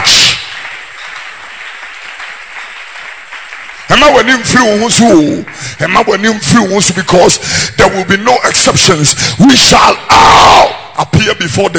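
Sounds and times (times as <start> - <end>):
audience clapping hands: 0.0 - 7.2
speech: 3.9 - 11.7.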